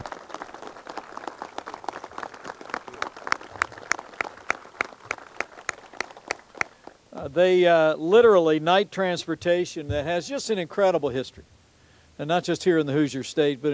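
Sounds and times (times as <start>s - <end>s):
audience applause: 0.0s - 7.0s
speech: 7.2s - 11.5s, 12.2s - 13.7s.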